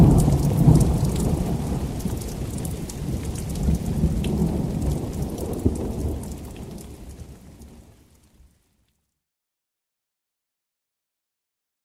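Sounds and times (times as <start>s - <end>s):
rain falling: 0.0s - 8.7s.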